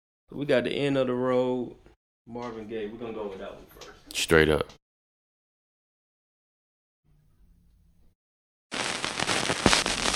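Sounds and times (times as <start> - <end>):
speech: 0.3 - 4.8
vinyl record crackle with hiss, pops and clicks: 8.7 - 10.1.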